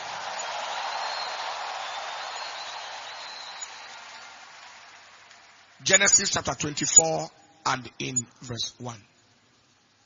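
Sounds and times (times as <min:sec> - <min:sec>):
audience shouting praise: 0:00.0 - 0:05.4
audience clapping: 0:00.0 - 0:06.2
speech: 0:05.8 - 0:09.1.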